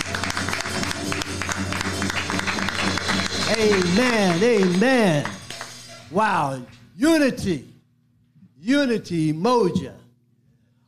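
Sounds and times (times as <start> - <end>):
audience hand clapping in praise: 0.0 - 6.8
speech: 3.5 - 5.4, 6.1 - 7.7, 8.6 - 10.0.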